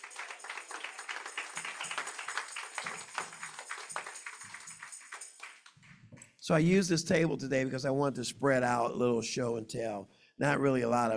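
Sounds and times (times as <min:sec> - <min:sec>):
audience clapping hands: 0:00.0 - 0:06.1
speech: 0:06.5 - 0:11.1.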